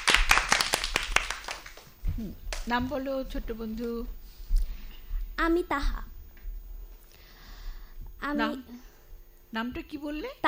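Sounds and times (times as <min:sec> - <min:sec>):
small audience clapping at a children's recitation event: 0:00.0 - 0:02.7
speech: 0:02.2 - 0:04.2, 0:05.4 - 0:06.1, 0:08.2 - 0:08.9, 0:09.5 - 0:10.4.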